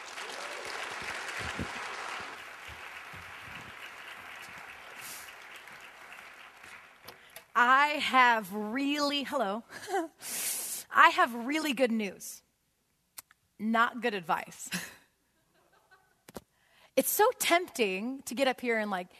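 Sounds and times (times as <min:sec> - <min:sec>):
audience applause welcoming a woman speaker: 0:00.0 - 0:07.5
speech: 0:07.6 - 0:10.4, 0:11.0 - 0:12.4, 0:13.6 - 0:14.8, 0:17.0 - 0:19.1.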